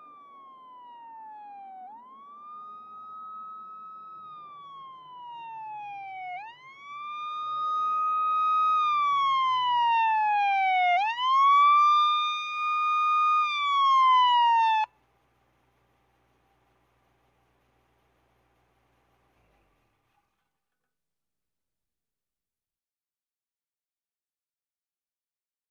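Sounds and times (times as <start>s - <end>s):
firetruck siren approaching and shutting off: 0.0s - 14.9s.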